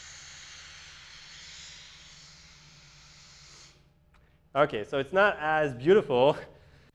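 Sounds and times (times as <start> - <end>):
sonified sound of the universe, white noise: 0.0 - 3.9
speech: 4.5 - 6.5.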